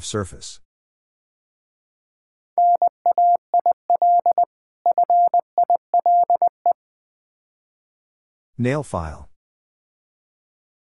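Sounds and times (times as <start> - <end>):
speech: 0.0 - 0.6, 8.6 - 9.3
Morse code beeps spelling nail file: 2.6 - 6.8.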